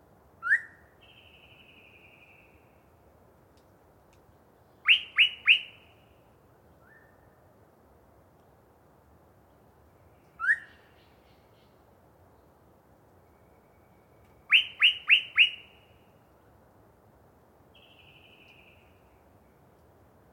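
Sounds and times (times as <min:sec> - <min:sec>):
yellow-breasted chat song: 0:00.4 - 0:02.6, 0:04.8 - 0:06.1, 0:06.8 - 0:07.3, 0:10.2 - 0:11.4, 0:13.2 - 0:16.1, 0:17.8 - 0:19.0.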